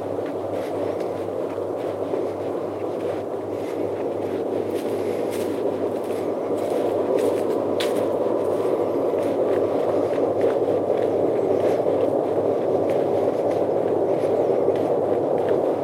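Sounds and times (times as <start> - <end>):
crisp ticks and crackles, possibly footsteps: 0.0 - 15.8
steady rushing hiss on the Appleton Trail at night: 0.0 - 15.8.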